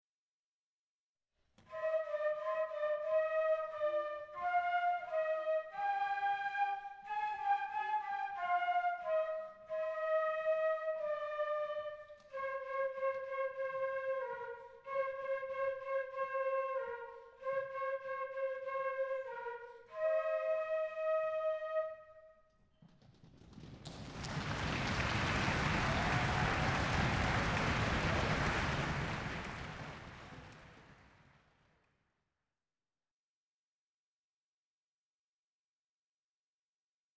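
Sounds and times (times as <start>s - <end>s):
flutes: 1.6s - 23.2s, 23.9s - 31.3s.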